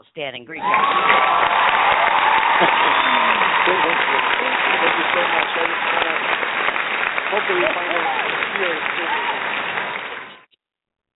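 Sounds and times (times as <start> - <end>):
speech: 0.0 - 1.8, 2.6 - 6.6, 7.3 - 9.6
laughter: 0.6 - 10.4
applause: 0.6 - 10.5.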